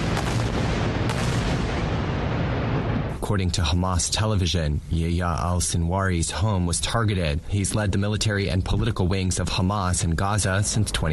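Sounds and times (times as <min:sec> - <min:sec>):
heavy artillery bombardment explosions: 0:00.0 - 0:03.7
speech: 0:03.3 - 0:11.1.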